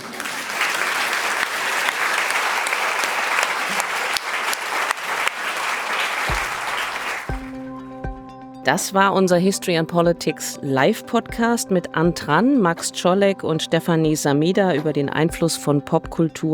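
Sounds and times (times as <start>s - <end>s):
audience applause: 0.0s - 7.6s
speech: 8.7s - 16.5s.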